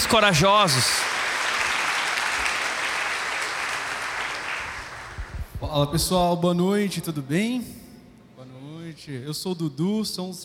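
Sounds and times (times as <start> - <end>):
crowd applause: 0.0 - 5.6
speech: 0.1 - 1.1, 5.7 - 7.8, 9.0 - 10.4.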